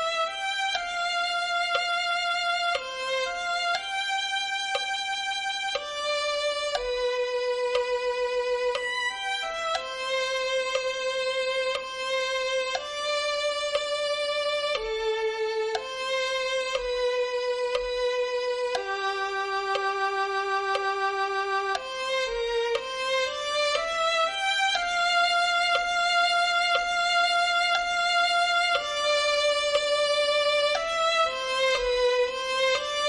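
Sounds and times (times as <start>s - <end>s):
violin melody: 0.0s - 33.0s.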